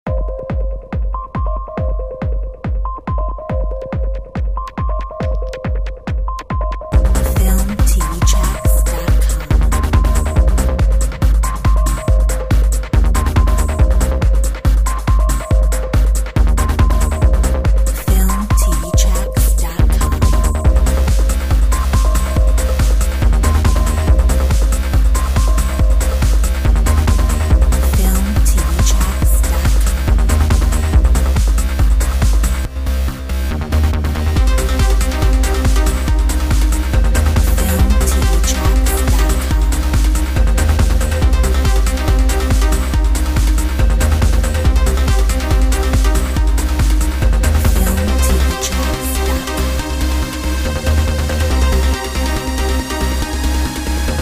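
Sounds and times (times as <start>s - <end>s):
techno trip music: 0.0s - 54.2s.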